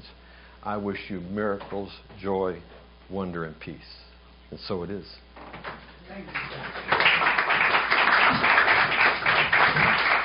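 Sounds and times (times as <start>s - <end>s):
speech: 0.6s - 5.3s, 6.1s - 6.8s
audience applause: 6.2s - 10.2s.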